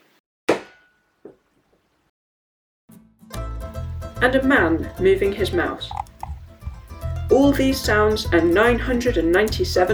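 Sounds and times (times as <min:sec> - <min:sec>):
someone hit by a Nerf bullet: 0:00.5 - 0:00.8
speech: 0:04.2 - 0:06.0, 0:07.3 - 0:09.9.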